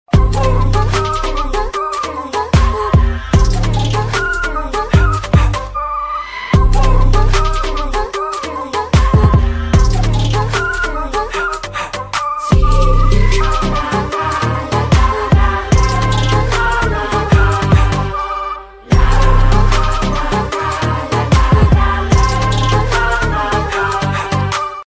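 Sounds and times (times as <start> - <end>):
background music: 0.1 - 24.8.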